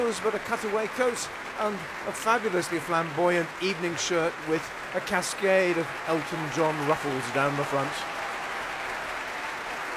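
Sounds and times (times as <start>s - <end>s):
speech: 0.0s - 8.2s
concert audience applause: 0.0s - 9.9s.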